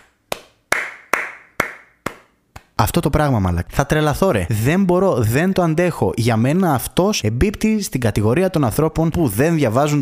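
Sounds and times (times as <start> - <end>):
slow hand claps from a single person: 0.0 - 2.8
speech: 2.8 - 10.0.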